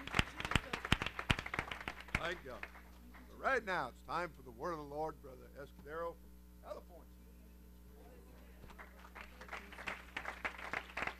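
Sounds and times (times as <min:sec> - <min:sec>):
church congregation clapping during a service: 0:00.0 - 0:03.3, 0:08.7 - 0:11.1
speech: 0:02.2 - 0:02.8, 0:03.4 - 0:07.2.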